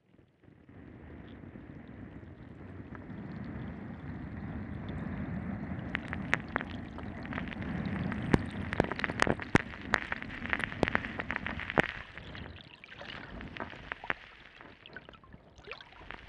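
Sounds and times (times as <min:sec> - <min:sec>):
water and sand moving: 0:00.7 - 0:16.2.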